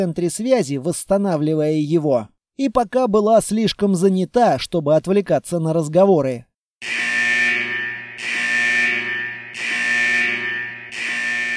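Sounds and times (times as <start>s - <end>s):
speech: 0.0s - 7.0s
security alarm set off by a counterfeit chip: 6.8s - 11.5s.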